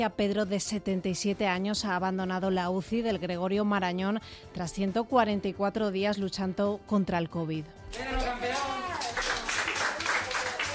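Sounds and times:
speech: 0:00.0 - 0:08.7
hospital staff applauding: 0:07.9 - 0:10.7.

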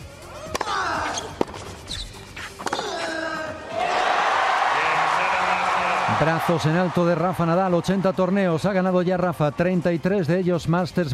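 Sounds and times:
tennis ball strikes: 0:00.4 - 0:01.8, 0:02.6 - 0:03.1
squeaking shoes: 0:00.6 - 0:03.3
tennis crowd ovation after the final point: 0:03.7 - 0:10.0
speech: 0:06.2 - 0:11.1.

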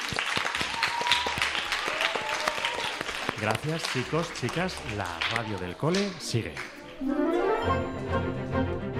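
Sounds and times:
applause: 0:00.0 - 0:07.0
speech: 0:03.4 - 0:08.9.

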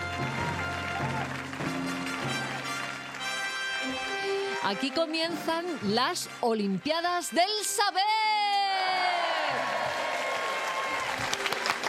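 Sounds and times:
audience applause: 0:00.0 - 0:04.6, 0:08.6 - 0:11.8
speech: 0:04.7 - 0:08.2.

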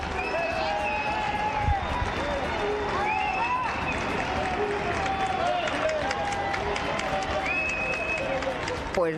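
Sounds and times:
crowd booing: 0:00.0 - 0:09.0.

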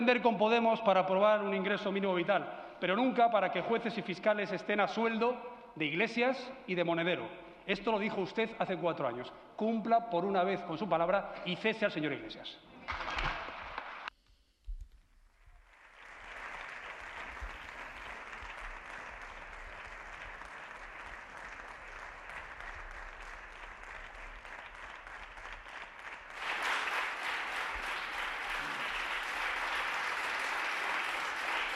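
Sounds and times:
speech: 0:00.0 - 0:13.3
Grupo Popular parliamentary applause: 0:12.9 - 0:14.1, 0:15.3 - 0:31.7.

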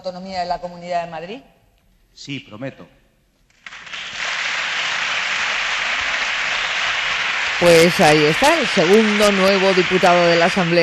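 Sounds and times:
speech: 0:00.0 - 0:01.6, 0:02.2 - 0:03.0, 0:07.6 - 0:10.8
applause from parliament benches: 0:03.5 - 0:10.8.

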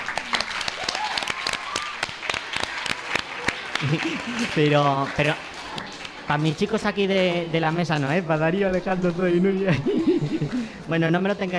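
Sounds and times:
audience applause: 0:00.0 - 0:06.8
laughter: 0:03.7 - 0:04.8, 0:09.5 - 0:10.9
speech: 0:03.8 - 0:11.5.

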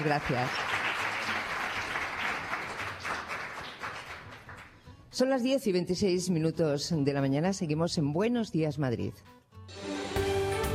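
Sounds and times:
speech: 0:00.0 - 0:00.8, 0:05.2 - 0:09.3
audience applause: 0:00.0 - 0:04.7.

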